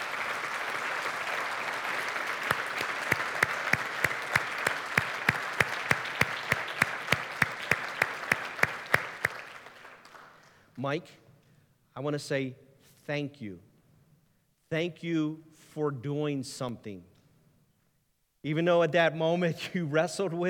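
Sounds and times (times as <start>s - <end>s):
audience applauding: 0.0s - 10.6s
speech: 10.8s - 11.2s, 12.0s - 13.7s, 14.7s - 17.1s, 18.4s - 20.4s.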